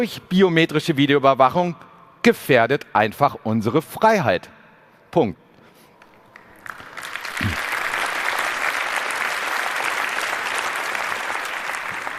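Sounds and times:
speech: 0:00.0 - 0:05.4
audience applause: 0:06.4 - 0:12.1.

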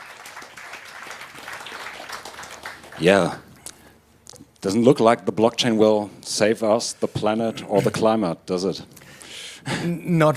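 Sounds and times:
audience applause: 0:00.0 - 0:03.4
speech: 0:03.0 - 0:03.4, 0:04.6 - 0:09.0, 0:09.6 - 0:10.3.

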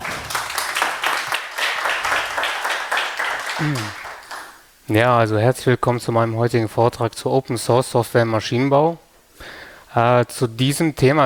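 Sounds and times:
audience applause for a speaker: 0:00.0 - 0:04.6
speech: 0:03.6 - 0:04.0, 0:04.9 - 0:11.2.

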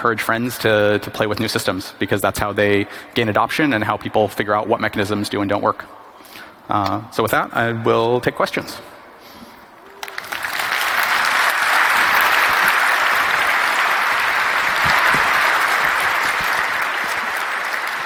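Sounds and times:
speech: 0:00.0 - 0:09.0
audience applause: 0:09.8 - 0:18.0.

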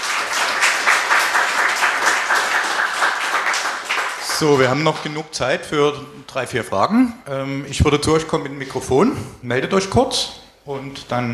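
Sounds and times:
audience applause: 0:00.0 - 0:05.2
speech: 0:04.4 - 0:11.3.

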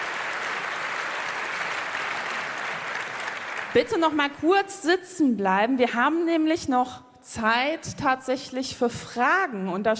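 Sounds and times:
audience applause: 0:00.0 - 0:03.8
speech: 0:03.7 - 0:09.9.

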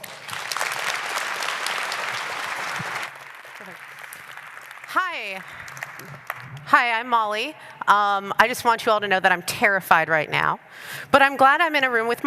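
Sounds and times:
audience applause: 0:00.0 - 0:06.7
speech: 0:04.9 - 0:12.2.

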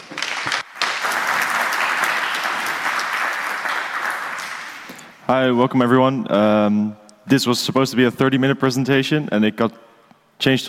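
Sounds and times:
crowd applauding: 0:00.0 - 0:05.2
speech: 0:05.3 - 0:10.6.

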